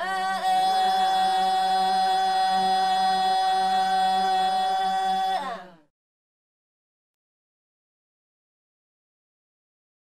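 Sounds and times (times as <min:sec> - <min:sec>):
women singing a song from the Solomon Islands: 0:00.0 - 0:05.9.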